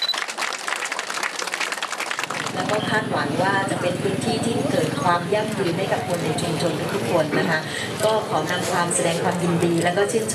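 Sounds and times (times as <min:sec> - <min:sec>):
audience applause: 0:00.0 - 0:02.8
speech: 0:02.6 - 0:10.3.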